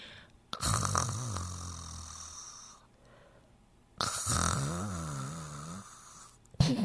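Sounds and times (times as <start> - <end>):
puppies snoring while asleep: 0.5 - 2.9, 4.0 - 6.4.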